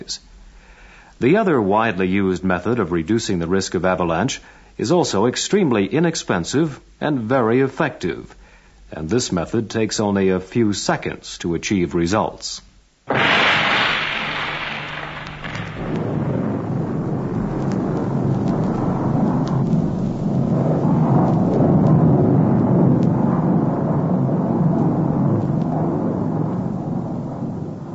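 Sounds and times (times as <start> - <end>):
speech: 0.1 - 0.3, 1.2 - 13.4
explosion blast: 13.1 - 27.9.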